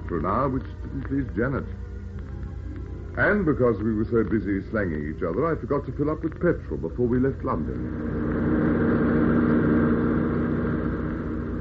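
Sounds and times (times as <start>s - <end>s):
speech: 0.1s - 1.9s, 3.2s - 8.6s
car engine droning while driving fast: 7.0s - 11.5s.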